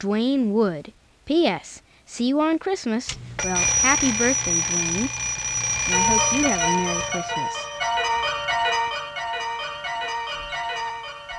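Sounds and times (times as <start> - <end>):
speech: 0.0 - 7.7
alarm clock electronic jingle: 3.4 - 11.3.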